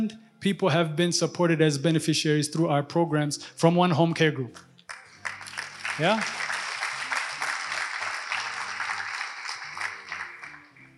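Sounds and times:
speech: 0.0 - 4.7, 6.0 - 6.4
polite clapping from audience: 4.6 - 10.9.

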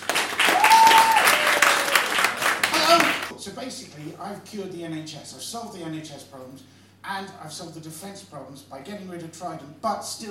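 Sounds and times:
audience applause welcoming a speaker: 0.0 - 3.3
speech: 3.4 - 10.2.

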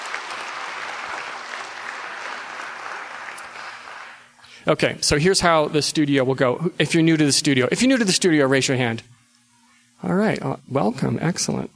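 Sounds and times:
audience applause: 0.0 - 4.3
speech: 4.6 - 9.2, 10.0 - 11.7.

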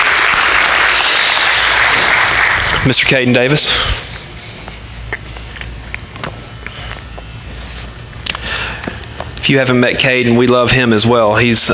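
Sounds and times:
audience clapping: 0.0 - 3.2
speech: 2.8 - 4.0, 9.5 - 11.7.

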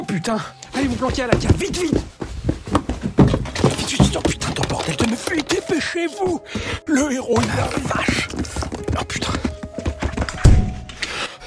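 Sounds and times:
speech: 0.1 - 2.2, 3.9 - 9.3
soft bumps: 0.7 - 10.9
dull knocks and thuds of a door being forced open: 1.1 - 6.8, 7.4 - 10.8.

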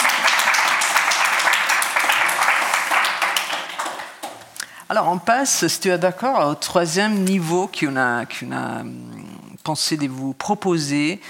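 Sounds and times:
audience applause: 0.0 - 4.5
speech: 4.9 - 11.2.

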